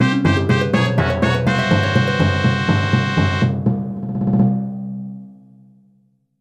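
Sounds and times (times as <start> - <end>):
fanfare: 0.0 - 3.7.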